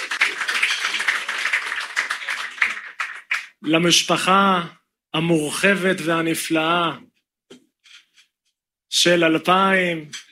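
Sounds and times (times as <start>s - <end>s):
crowd applauding: 0.0s - 3.6s
speech: 3.6s - 7.1s, 9.0s - 10.2s.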